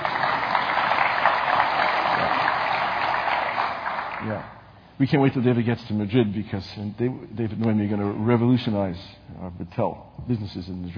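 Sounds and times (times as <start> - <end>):
audience applause: 0.0 - 4.5
speech: 5.0 - 10.9.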